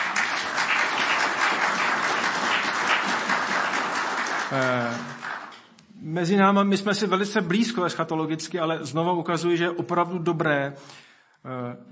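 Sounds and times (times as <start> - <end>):
audience applause: 0.0 - 5.7
speech: 4.5 - 5.2, 6.0 - 11.9.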